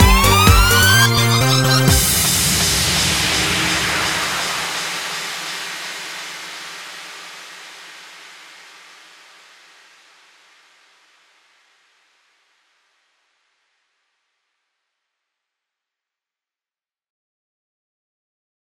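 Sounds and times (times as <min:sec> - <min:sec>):
karaoke singing: 0:00.0 - 0:05.3.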